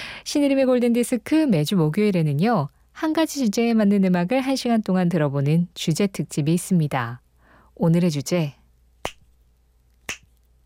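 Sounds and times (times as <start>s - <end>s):
speech: 0.3s - 7.2s, 7.8s - 8.6s
finger snapping: 9.0s - 9.2s, 10.1s - 10.3s.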